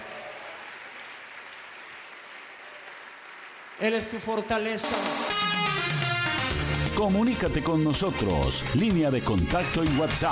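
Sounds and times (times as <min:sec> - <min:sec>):
worship service congregation clapping loudly in praise: 0:00.0 - 0:06.4
speech: 0:03.8 - 0:06.0, 0:07.0 - 0:10.3.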